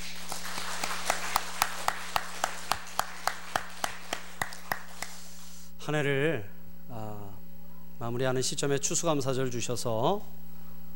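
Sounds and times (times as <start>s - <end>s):
audience clapping: 0.0s - 5.5s
speech: 5.8s - 7.3s, 8.0s - 10.4s.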